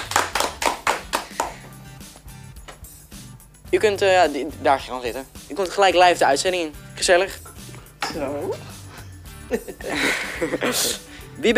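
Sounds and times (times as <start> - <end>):
crisp hand claps: 0.0 - 2.9
speech: 3.7 - 7.4, 8.1 - 8.7, 9.5 - 11.5
laughter: 9.5 - 11.1.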